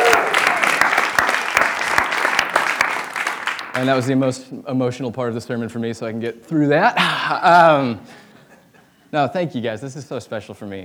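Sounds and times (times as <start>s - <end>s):
crowd applause: 0.0s - 4.5s, 6.9s - 8.6s
laughter: 0.0s - 9.8s
speech: 3.8s - 8.2s, 9.1s - 10.8s.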